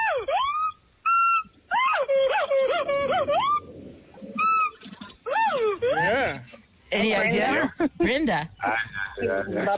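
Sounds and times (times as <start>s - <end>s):
howler monkey call: 0.0s - 6.4s
speech: 6.9s - 9.7s.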